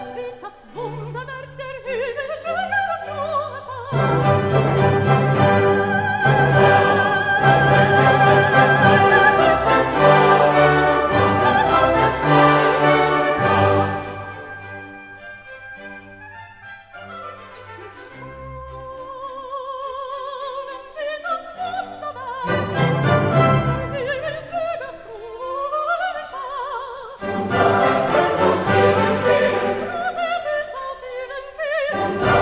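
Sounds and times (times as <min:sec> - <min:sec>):
choir singing: 0:01.9 - 0:15.6, 0:22.0 - 0:26.4, 0:27.1 - 0:32.3.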